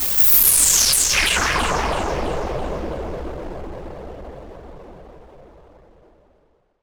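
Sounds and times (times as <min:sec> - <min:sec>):
swept noise: 0:00.0 - 0:02.8.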